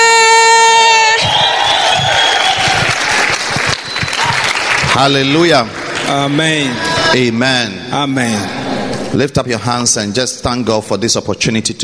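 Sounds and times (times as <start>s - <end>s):
church congregation shouting and cheering: 0.0s - 5.0s
church congregation applauding to welcome a bishop: 1.2s - 7.1s
speech: 5.0s - 11.8s.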